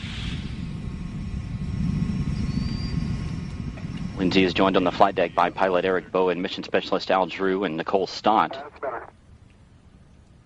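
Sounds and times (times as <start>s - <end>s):
space shuttle main engines rumbling: 0.0s - 9.1s
faint thin whine: 0.0s - 9.2s
speech: 4.2s - 9.1s.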